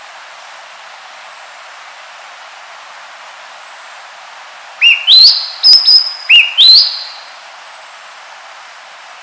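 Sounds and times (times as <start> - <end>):
Cissa thalassina bird calling: 4.8 - 7.3.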